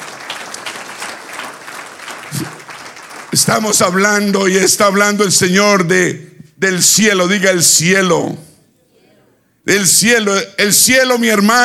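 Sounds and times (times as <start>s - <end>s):
audience applause: 0.0s - 4.0s
speech: 2.4s - 2.6s, 3.3s - 8.5s, 9.6s - 11.6s.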